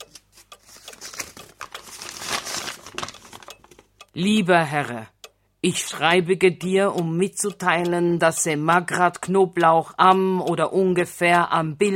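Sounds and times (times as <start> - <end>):
paper letter crinkling as it is handled: 0.1 - 3.9
speech: 4.2 - 11.9.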